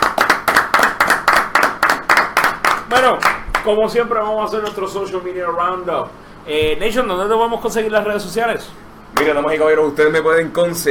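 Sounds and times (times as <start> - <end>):
audience applause: 0.0 - 3.7
speech: 2.9 - 10.9.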